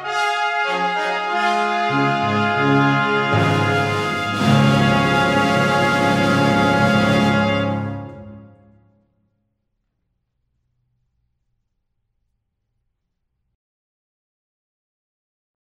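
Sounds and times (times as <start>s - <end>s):
Christmas brass fanfare: 0.0s - 9.0s.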